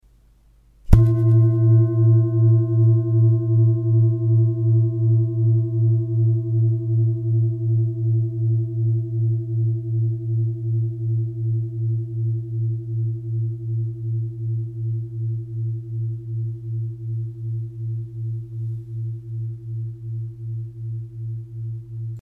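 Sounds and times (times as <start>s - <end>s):
singing bowl: 0.9s - 22.2s.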